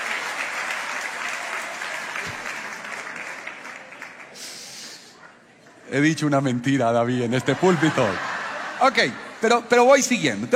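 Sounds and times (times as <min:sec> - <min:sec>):
audience applause: 0:00.0 - 0:05.1
speech: 0:05.9 - 0:10.5
laughter: 0:07.2 - 0:09.6.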